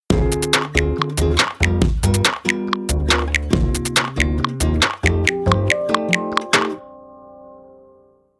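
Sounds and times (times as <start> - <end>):
beats: 0.1 - 6.8.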